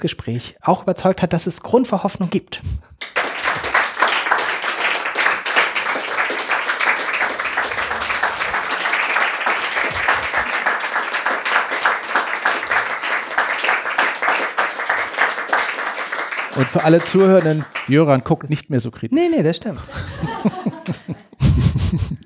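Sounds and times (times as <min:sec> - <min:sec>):
speech: 0:00.0 - 0:02.9, 0:16.6 - 0:21.2
audience applause: 0:03.0 - 0:18.2
laughter: 0:07.5 - 0:10.9, 0:19.7 - 0:22.2.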